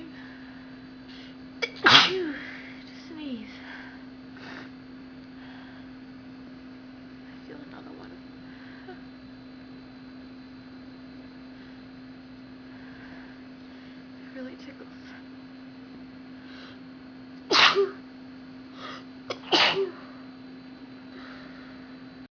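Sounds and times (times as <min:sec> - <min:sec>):
woman sneezing: 0:01.6 - 0:02.5, 0:17.5 - 0:18.0, 0:19.3 - 0:20.0.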